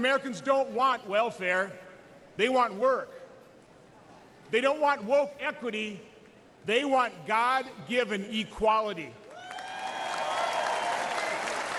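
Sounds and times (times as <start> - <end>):
speech: 0.0 - 3.2, 4.5 - 9.2
audience clapping after a line in a Republican political speech: 9.3 - 11.7.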